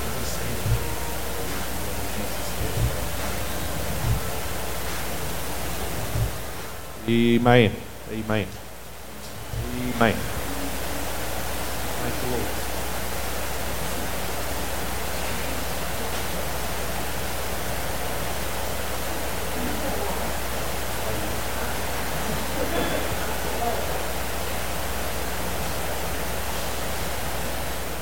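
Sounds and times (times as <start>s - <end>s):
laughter: 0.0s - 4.5s, 19.4s - 20.4s, 21.0s - 24.2s
heavy rain falling: 0.0s - 28.0s
speech: 7.1s - 8.6s, 10.0s - 10.3s.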